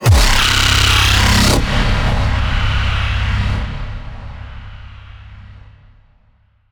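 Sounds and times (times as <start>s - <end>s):
low cinematic impact: 0.0s - 6.6s.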